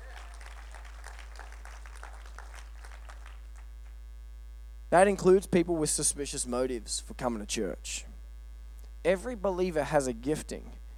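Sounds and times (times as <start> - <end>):
audience clapping: 0.0 - 4.0
speech: 4.9 - 8.1, 9.0 - 10.8.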